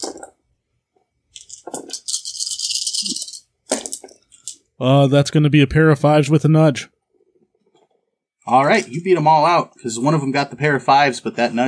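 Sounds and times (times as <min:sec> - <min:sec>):
dice being rolled: 0:00.0 - 0:00.4, 0:01.3 - 0:04.6
speech: 0:04.8 - 0:06.9, 0:08.5 - 0:11.6.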